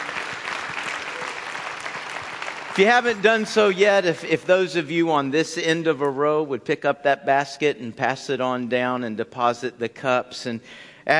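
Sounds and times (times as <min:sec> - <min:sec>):
audience applauding: 0:00.0 - 0:04.0
speech: 0:02.8 - 0:11.1.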